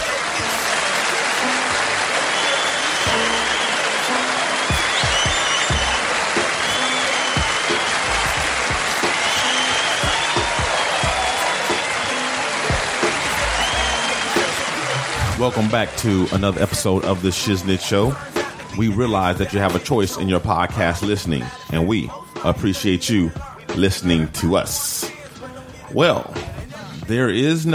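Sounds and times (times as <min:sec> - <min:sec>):
audience applause: 0:00.0 - 0:18.4
cheers and whistles: 0:00.0 - 0:18.8
speech: 0:15.4 - 0:25.0, 0:25.9 - 0:26.4, 0:27.1 - 0:27.7.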